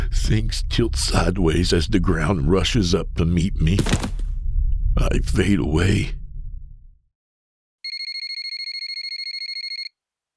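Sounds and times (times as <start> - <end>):
speech: 0.2 - 4.2, 5.0 - 6.2
mobile phone ringing: 7.9 - 9.9.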